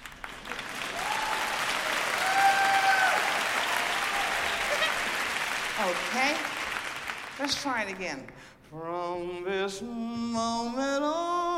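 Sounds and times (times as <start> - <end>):
audience applause: 0.0 - 8.1
speech: 5.9 - 6.5, 7.4 - 11.5.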